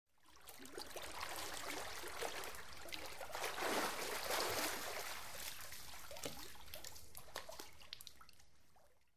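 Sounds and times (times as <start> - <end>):
person swimming: 0.6 - 7.9.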